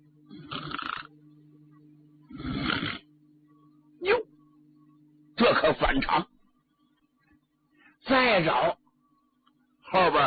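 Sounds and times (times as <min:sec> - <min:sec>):
faint steady low hum: 0:00.0 - 0:10.2
voice imitating a person snoring: 0:00.3 - 0:01.1, 0:02.3 - 0:03.1
speech: 0:05.6 - 0:06.3, 0:08.4 - 0:08.8.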